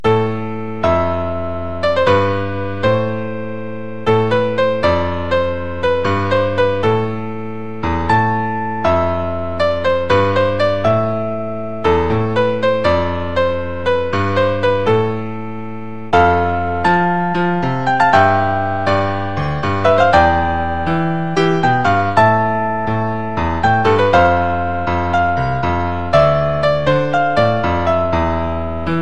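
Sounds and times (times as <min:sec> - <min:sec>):
piano: 0:00.0 - 0:29.0.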